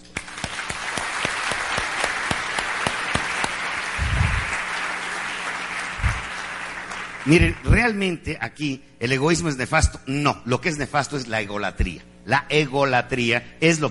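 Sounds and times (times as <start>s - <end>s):
audience applause: 0.2s - 7.7s
speech: 7.3s - 13.9s.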